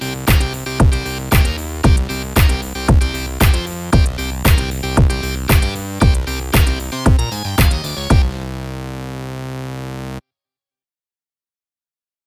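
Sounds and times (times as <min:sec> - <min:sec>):
karaoke singing: 0:00.0 - 0:08.8.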